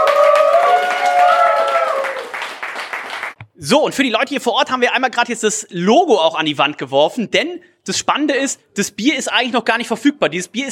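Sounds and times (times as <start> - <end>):
applause: 0.0 - 3.4
speech: 3.6 - 10.7.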